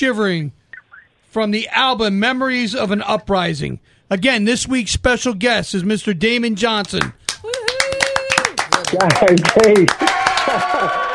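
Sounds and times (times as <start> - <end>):
speech: 0.0 - 0.6, 1.3 - 7.2, 8.9 - 11.1
crowd applause sound effect: 7.4 - 11.1
laughter: 10.0 - 11.1.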